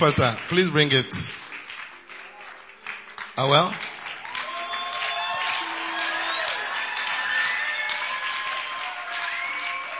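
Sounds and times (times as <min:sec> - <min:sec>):
speech: 0:00.0 - 0:01.4, 0:03.4 - 0:03.9
dense continuous audience applause: 0:00.0 - 0:09.9
audience shouting and whooping: 0:04.2 - 0:09.9.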